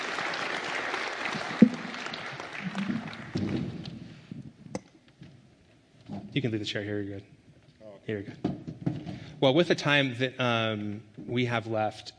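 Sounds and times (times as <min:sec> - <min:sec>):
audience applause: 0:00.0 - 0:04.1
speech: 0:06.4 - 0:07.4, 0:08.0 - 0:08.6, 0:09.4 - 0:12.1.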